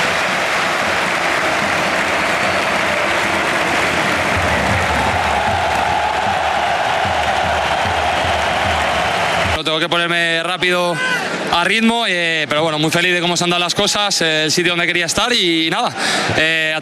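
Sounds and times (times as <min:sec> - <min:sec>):
large stadium crowd clapping and cheering: 0:00.0 - 0:10.7
speech: 0:09.6 - 0:16.8.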